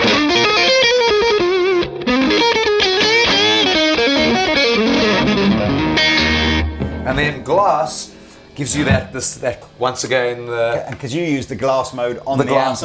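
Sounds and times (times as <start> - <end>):
electric guitar through Tube Screamer overdrive pedal: 0.0 - 7.3
speech: 7.2 - 12.8.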